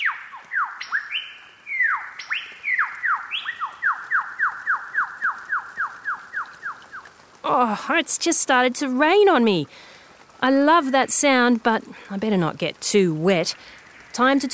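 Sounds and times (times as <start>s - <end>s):
lyrebird singing its own song: 0.0s - 7.1s
speech: 7.5s - 14.5s.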